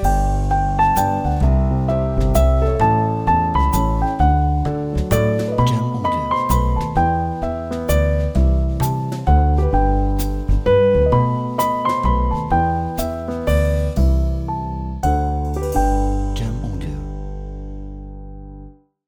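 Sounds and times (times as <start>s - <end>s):
Christmas jazz music: 0.0s - 18.7s.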